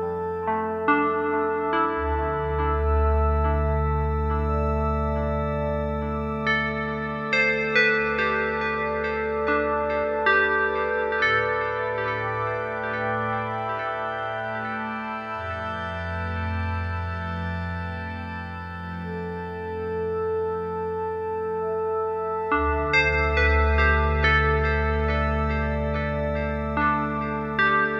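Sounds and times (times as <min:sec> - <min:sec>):
synthesizer ambience: 0:00.0 - 0:27.9.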